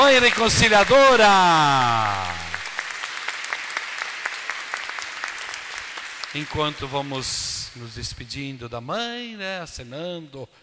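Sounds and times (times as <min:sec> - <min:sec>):
crowd clapping: 0:00.0 - 0:08.2
speech: 0:00.1 - 0:02.4, 0:06.3 - 0:10.6.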